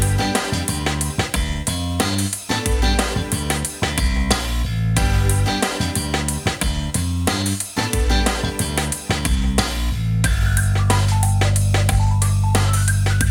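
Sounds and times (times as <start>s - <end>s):
band playing rhythmic background music: 0.0s - 13.2s.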